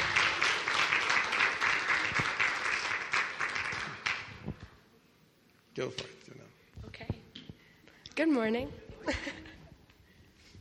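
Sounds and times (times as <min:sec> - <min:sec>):
crowd clapping: 0:00.0 - 0:04.6
speech: 0:05.8 - 0:06.2, 0:08.2 - 0:09.3.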